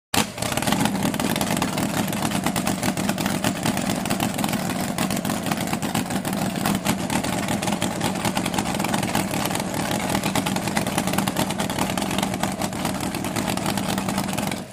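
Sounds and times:
drag boat engine idling: 0.2s - 14.7s.

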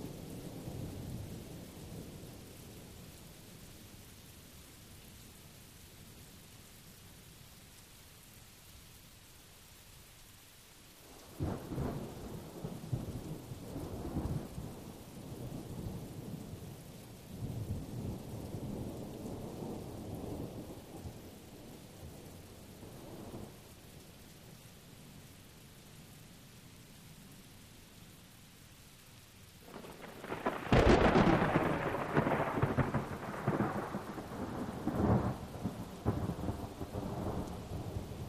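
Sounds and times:
rain at Blue Mountain Lake Adirondacks New York: 0.0s - 38.2s
continuous thunder at Blue Mountain Lake Adirondacks New York: 11.0s - 23.8s, 29.6s - 38.2s.

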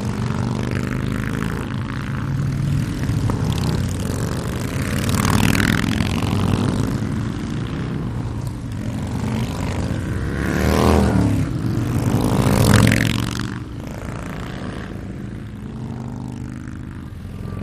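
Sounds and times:
multiple Harley Davidson motorcycles: 0.0s - 17.6s.

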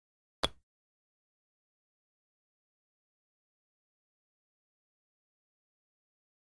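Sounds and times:
dart clipping another dart: 0.4s - 0.6s.

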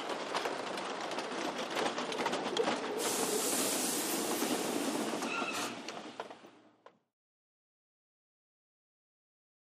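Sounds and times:
roller coaster onboard ride: 0.0s - 7.0s.

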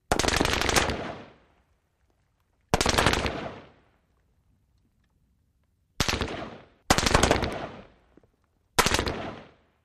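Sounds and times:
M-16 rifle rapid fire: 0.1s - 1.4s, 2.8s - 3.7s, 6.0s - 7.9s, 8.8s - 9.6s.

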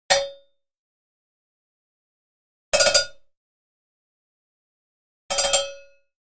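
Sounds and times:
cowbell: 2.8s - 3.2s, 5.3s - 6.0s.

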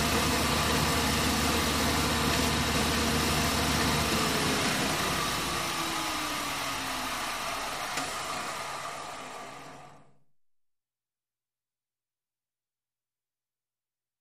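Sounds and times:
motorized wood jointer shop tool running steady and winding down: 0.0s - 10.1s.

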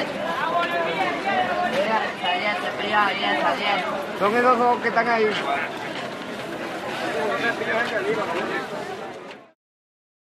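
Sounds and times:
Spanish crowd walla at an open market: 0.0s - 9.6s.

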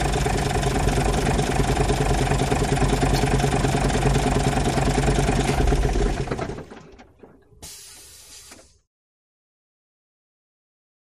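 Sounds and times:
coach bus passing slowly: 0.0s - 8.5s.

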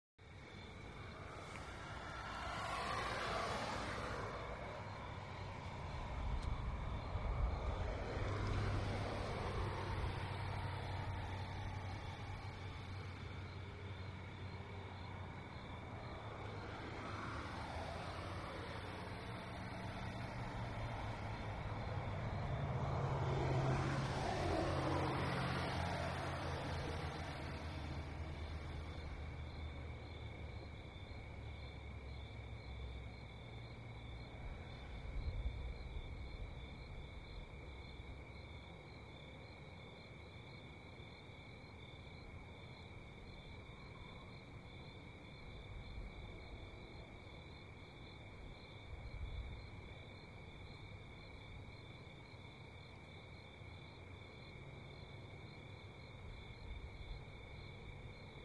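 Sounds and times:
suburban traffic at night: 0.2s - 58.4s.

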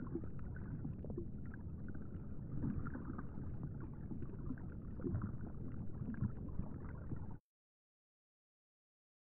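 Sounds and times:
underwater water flow: 0.0s - 7.4s.

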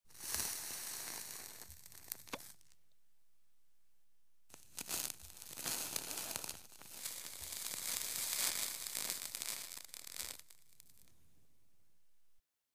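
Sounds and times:
person smoking a cigarette: 0.1s - 2.8s, 4.5s - 11.2s.

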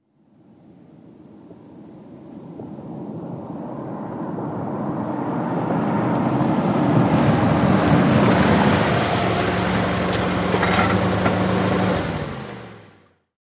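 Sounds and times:
sedan approaching: 4.8s - 13.2s.

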